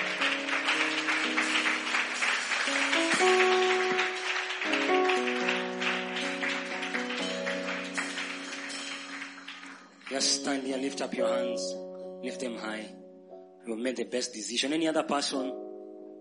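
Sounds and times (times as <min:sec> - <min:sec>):
audience clapping: 0:00.0 - 0:10.8
sustained keyboard chords: 0:00.0 - 0:14.2
speech: 0:10.2 - 0:13.0, 0:13.6 - 0:15.6.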